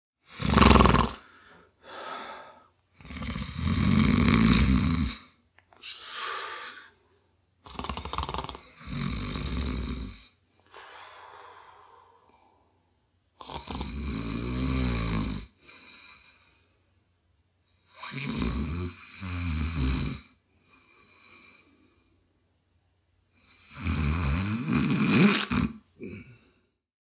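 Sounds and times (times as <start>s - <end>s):
man snoring long: 0.2s - 1.3s, 1.9s - 5.4s, 7.6s - 10.4s, 13.4s - 16.4s, 17.9s - 21.6s, 23.4s - 26.5s.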